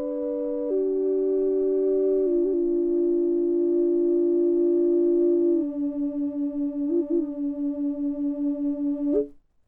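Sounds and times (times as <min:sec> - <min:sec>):
maple double drone flute playing D 440 without reverb: 0:00.0 - 0:09.4.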